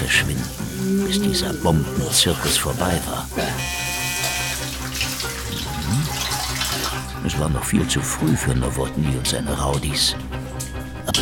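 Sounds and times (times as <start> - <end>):
shower water running: 0.0 - 7.6
speech: 1.1 - 3.8, 7.4 - 10.4.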